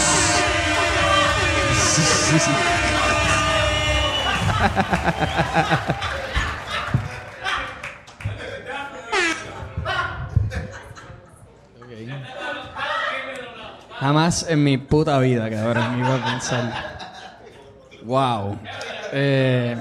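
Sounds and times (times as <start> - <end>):
laughter: 0.0 - 7.8, 8.4 - 11.6, 15.5 - 17.8, 18.6 - 19.8
audience applause: 0.0 - 8.3
speech: 2.0 - 2.8, 4.6 - 6.3, 14.0 - 16.9, 18.0 - 19.8.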